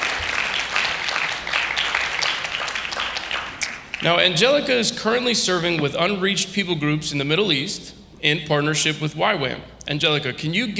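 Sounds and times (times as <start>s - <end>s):
crowd applause: 0.0s - 4.2s
speech: 4.0s - 10.7s.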